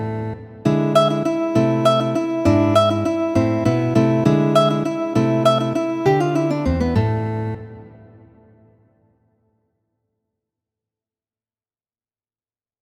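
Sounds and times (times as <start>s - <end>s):
guitar waltzes: 0.0s - 8.3s.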